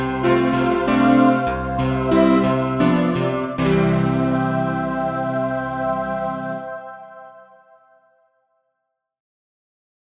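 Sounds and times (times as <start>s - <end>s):
instrumental melody track: 0.0s - 7.7s.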